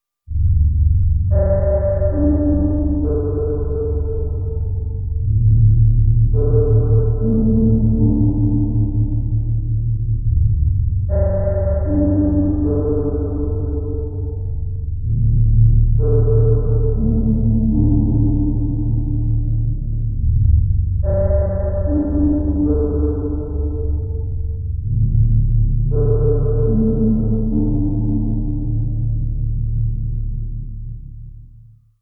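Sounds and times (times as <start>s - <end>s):
deep space ambience: 0.3s - 31.8s.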